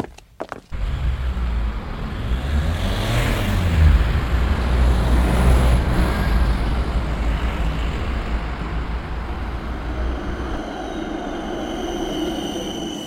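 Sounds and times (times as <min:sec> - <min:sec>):
heavy rail vehicle tram arriving at stop: 0:00.7 - 0:13.0
thin high squeal: 0:05.5 - 0:13.0.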